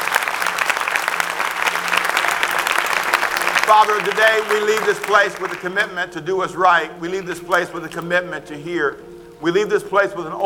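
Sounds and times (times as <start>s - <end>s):
audience applause: 0.0s - 5.9s
speech: 3.7s - 10.4s.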